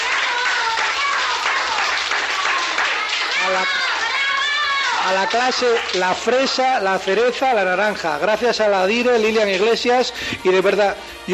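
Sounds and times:
audience applauding at a farewell event in a public infant school: 0:00.0 - 0:06.6
speech: 0:03.5 - 0:04.0, 0:05.0 - 0:11.3.

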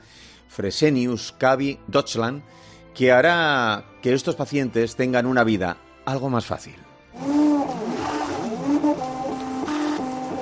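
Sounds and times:
speech: 0:00.6 - 0:07.4
3D printer running: 0:07.2 - 0:10.3.

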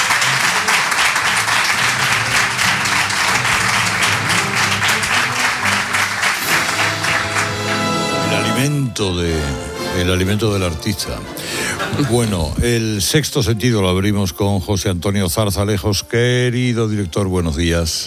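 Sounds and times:
audience applause: 0:00.0 - 0:08.7
speech: 0:09.0 - 0:18.0
laughter: 0:11.4 - 0:12.6.

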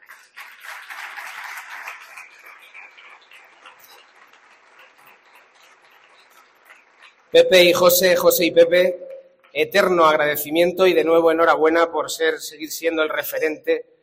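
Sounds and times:
audience applause ovation: 0:00.0 - 0:07.4
speech: 0:07.3 - 0:13.9.

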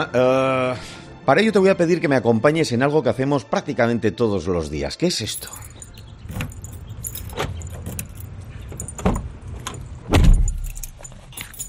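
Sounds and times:
speech: 0:00.0 - 0:05.7
keys jangling: 0:05.3 - 0:11.6
car engine starting and rumbling: 0:06.1 - 0:11.6
car door clunks: 0:07.3 - 0:10.9.

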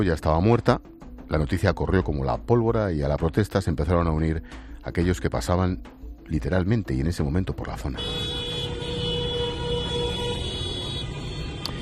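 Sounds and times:
speech: 0:00.0 - 0:08.3
car horns honking in support of protest: 0:08.0 - 0:11.8.

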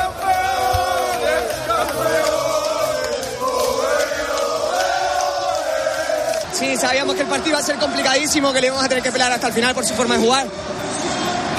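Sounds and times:
packed stadium of football fans chanting in celebration of promotion: 0:00.0 - 0:11.5
speech: 0:06.8 - 0:10.8.

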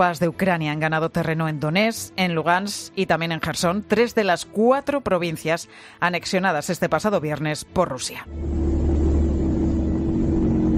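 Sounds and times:
speech: 0:00.0 - 0:08.8
military vehicles advancing near Kharkiv: 0:08.3 - 0:10.7.

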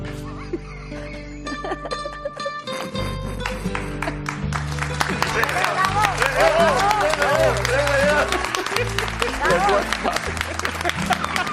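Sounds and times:
laughter: 0:00.0 - 0:11.5
person clapping for the guitarist: 0:03.3 - 0:11.5.

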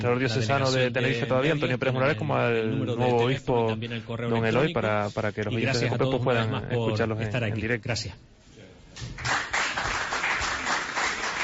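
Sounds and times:
speech: 0:00.0 - 0:08.4
applause and ovation in Las Palmas de Gran Canaria: 0:09.1 - 0:11.4.

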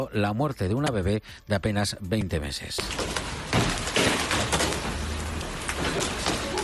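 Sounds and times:
speech: 0:00.0 - 0:03.2
hailstones pounding down in a violent hailstorm: 0:02.8 - 0:06.6.

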